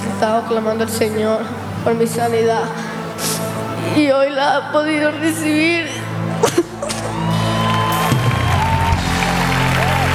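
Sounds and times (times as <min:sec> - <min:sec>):
speech: 0:00.2 - 0:02.8, 0:03.8 - 0:06.0
audience applause and cheering: 0:06.8 - 0:10.1.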